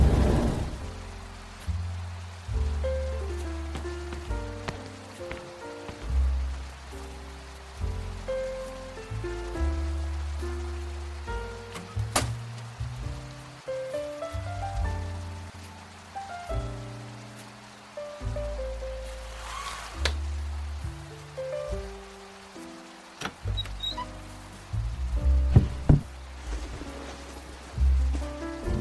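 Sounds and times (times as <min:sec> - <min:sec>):
light steady rain patter: 0:00.0 - 0:28.8
slow gentle relaxing music: 0:00.8 - 0:28.8.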